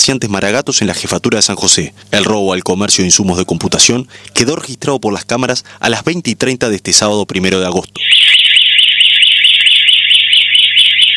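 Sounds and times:
speech: 0:00.0 - 0:08.5
shop burglar alarm going off: 0:08.0 - 0:11.1.

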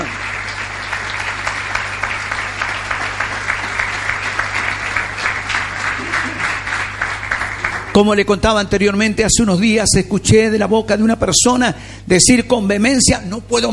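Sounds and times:
audience applause: 0:00.0 - 0:08.2
speech: 0:08.0 - 0:13.7.

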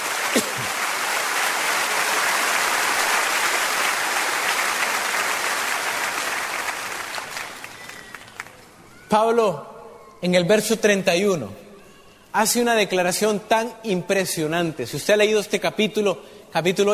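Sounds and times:
sustained applause from a crowd: 0:00.0 - 0:08.8
speech: 0:00.4 - 0:00.8, 0:09.1 - 0:11.6, 0:12.4 - 0:16.9.

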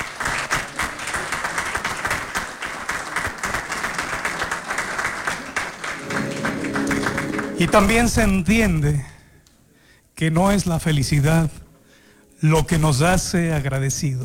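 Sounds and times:
crowd applauding: 0:00.0 - 0:08.4
speech: 0:07.6 - 0:09.1, 0:10.2 - 0:11.6, 0:12.4 - 0:14.2.

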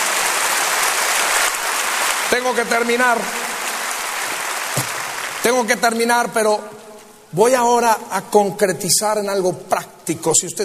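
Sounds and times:
audience applause: 0:00.0 - 0:05.9
speech: 0:02.3 - 0:03.5, 0:05.4 - 0:10.6.

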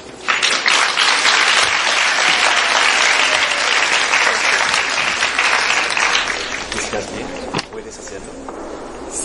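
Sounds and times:
show audience applause welcoming a performer: 0:00.1 - 0:07.5.

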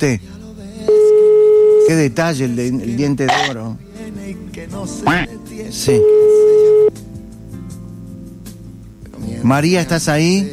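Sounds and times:
speech: 0:00.0 - 0:00.3, 0:01.9 - 0:07.0, 0:09.4 - 0:10.5
faint hum: 0:00.0 - 0:10.5
telephone ringing tone: 0:00.9 - 0:02.0, 0:03.3 - 0:03.6, 0:05.9 - 0:06.9.

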